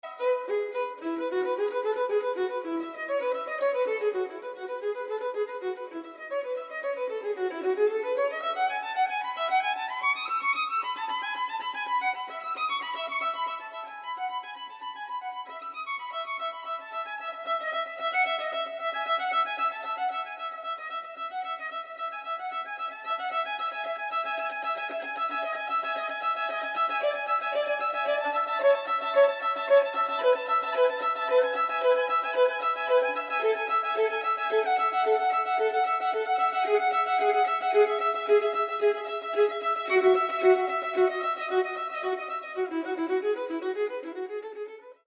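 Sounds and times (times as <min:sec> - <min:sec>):
solo violin prelude: 0:00.0 - 0:45.0.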